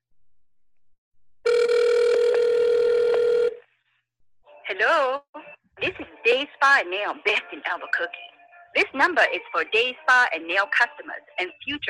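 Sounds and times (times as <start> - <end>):
phone ringback tone on speakerphone: 1.4 - 3.6
speech: 4.8 - 11.8.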